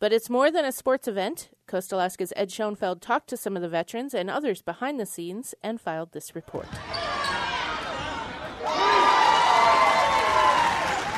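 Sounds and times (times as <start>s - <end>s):
speech: 0.0s - 7.2s
fans cheering in a gym at gold medal tournament game: 6.7s - 11.1s.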